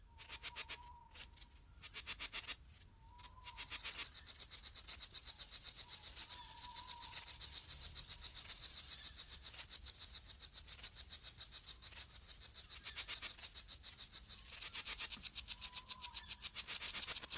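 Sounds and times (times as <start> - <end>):
crickets chirping on a summer night: 0.0 - 17.3.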